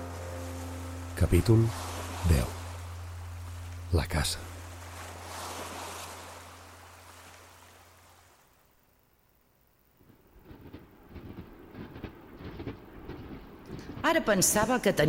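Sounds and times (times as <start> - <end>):
speech: 1.2 - 2.6, 3.9 - 4.5, 14.2 - 15.0
train running on rails between Figueres and Girona: 10.0 - 15.0.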